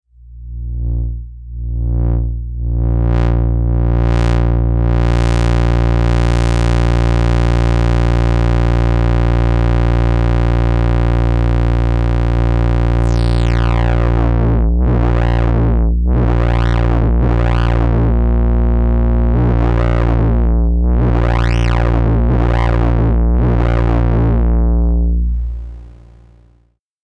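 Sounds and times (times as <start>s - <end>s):
dry synthesizer filter test: 0.1s - 26.7s.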